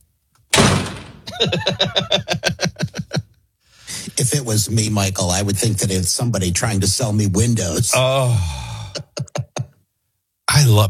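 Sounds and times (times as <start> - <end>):
knock at the door: 0.6 - 1.4
speech: 1.4 - 2.8, 4.2 - 8.7, 10.7 - 10.8.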